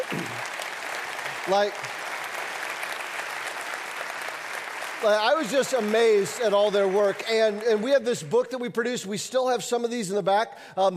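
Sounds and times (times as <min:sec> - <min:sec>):
audience applause: 0:00.0 - 0:08.4
speech: 0:01.5 - 0:02.0, 0:05.0 - 0:10.9.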